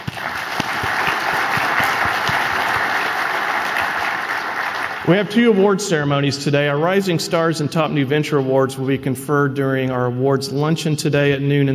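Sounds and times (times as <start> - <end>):
audience applause: 0.0 - 5.4
speech: 5.1 - 11.7.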